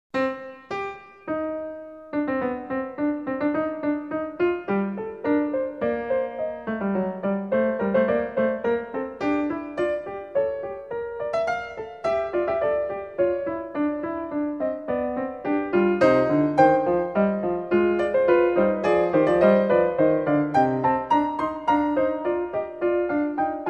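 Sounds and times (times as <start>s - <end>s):
classical keyboard fugue in C minor: 0.2s - 23.6s.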